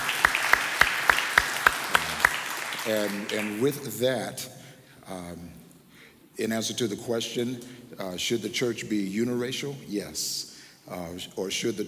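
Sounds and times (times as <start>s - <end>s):
audience clapping: 0.0s - 4.0s
speech: 2.8s - 5.6s, 6.4s - 11.8s.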